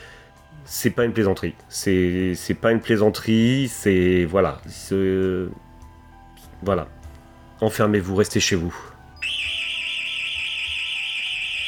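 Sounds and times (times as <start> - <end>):
speech: 0.7 - 5.7, 6.6 - 7.0, 7.6 - 8.9
intruder alarm blaring: 9.2 - 11.6.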